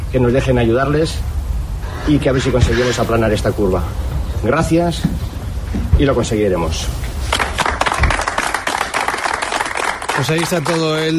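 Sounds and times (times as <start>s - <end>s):
speech: 0.1s - 1.4s, 2.1s - 5.3s, 6.0s - 7.1s, 10.2s - 11.1s
applause for a SAMU emergency medical team: 7.3s - 11.1s.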